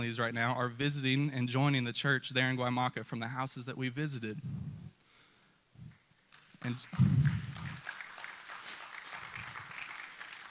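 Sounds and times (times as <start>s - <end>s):
speech: 0.0s - 4.8s, 6.6s - 7.4s
audience clapping: 5.9s - 10.4s.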